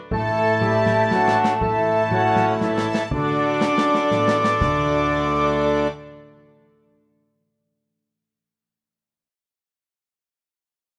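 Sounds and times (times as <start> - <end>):
orchestra playing a waltz with solo: 0.0 - 6.2.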